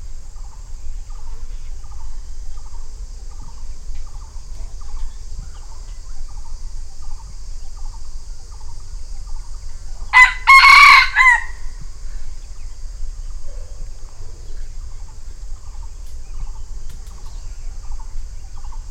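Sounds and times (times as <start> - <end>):
red junglefowl crowing: 10.1 - 11.8.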